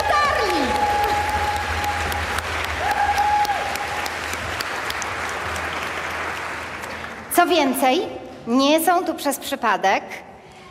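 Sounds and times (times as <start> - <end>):
audience applause: 0.0 - 7.3
speech: 7.4 - 10.3.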